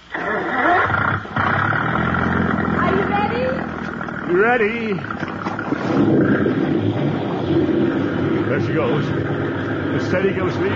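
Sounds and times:
motorboat engine starting: 0.0 - 10.7
speech: 4.3 - 5.1, 8.5 - 10.7.

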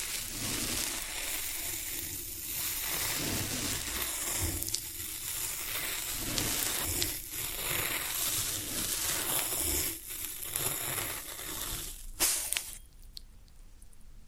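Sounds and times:
floral foam sounds: 0.0 - 12.8.

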